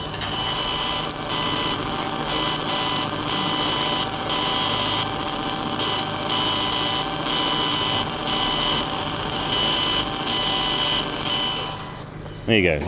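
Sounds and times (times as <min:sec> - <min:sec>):
strange electronic buzz and whir from a bus stop speaker: 0:00.0 - 0:12.0
speech: 0:12.5 - 0:12.8.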